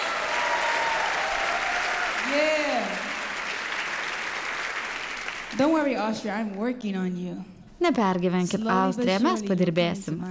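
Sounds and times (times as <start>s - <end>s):
audience clapping: 0.0s - 6.7s
speech: 5.6s - 10.2s.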